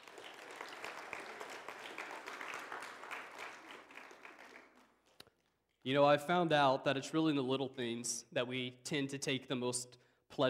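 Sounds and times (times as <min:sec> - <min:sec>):
audience applause: 0:00.0 - 0:05.1
speech: 0:05.8 - 0:10.4.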